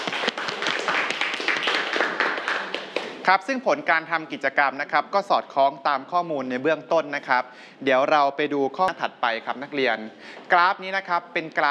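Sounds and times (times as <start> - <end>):
group of students clapping: 0.0 - 3.2
speech: 3.2 - 11.6.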